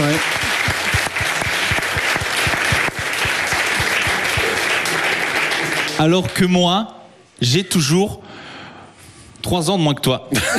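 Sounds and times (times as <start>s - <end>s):
audience applause: 0.0s - 6.6s
speech: 6.0s - 8.3s, 9.4s - 10.5s.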